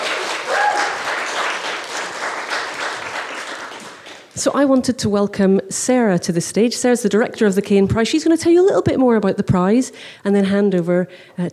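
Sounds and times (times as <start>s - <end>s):
audience applause: 0.0s - 4.3s
speech: 4.4s - 11.5s.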